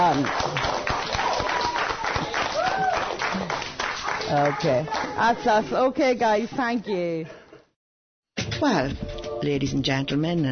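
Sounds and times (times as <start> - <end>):
speech: 0.0 - 0.7, 4.3 - 7.4, 8.6 - 10.4
children clapping: 0.0 - 5.4.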